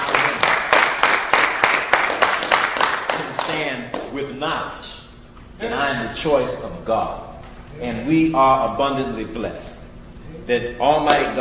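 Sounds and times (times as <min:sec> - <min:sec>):
audience at a religious gathering clapping in unison: 0:00.0 - 0:04.3, 0:11.0 - 0:11.3
speech: 0:04.4 - 0:05.0, 0:05.6 - 0:09.8, 0:10.4 - 0:11.3.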